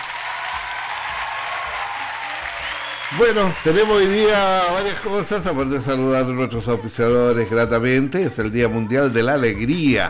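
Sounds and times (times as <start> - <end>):
applause: 0.0 - 5.5
speech: 3.1 - 10.0.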